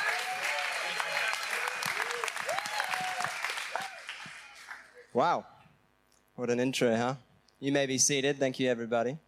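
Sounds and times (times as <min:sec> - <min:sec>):
church congregation cheering: 0:00.0 - 0:05.0
church congregation applause at C3 Kawana Waters: 0:00.0 - 0:05.1
speech: 0:05.2 - 0:05.5, 0:06.4 - 0:09.2.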